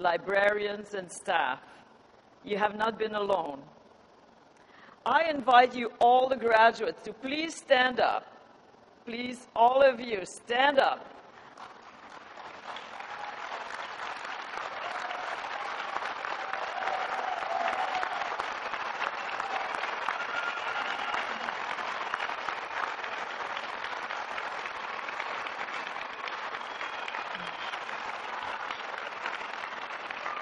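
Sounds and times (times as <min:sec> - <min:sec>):
speech: 0:00.0 - 0:01.8, 0:02.4 - 0:03.8, 0:05.0 - 0:08.3, 0:09.0 - 0:11.2
large crowd applauding graduates: 0:11.4 - 0:30.4.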